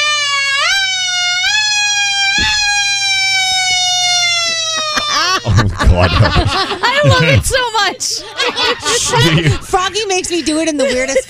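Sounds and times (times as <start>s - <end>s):
voice imitating an emergency alert siren tone: 0.0s - 7.4s
laughter: 4.2s - 11.2s
speech: 6.0s - 11.2s.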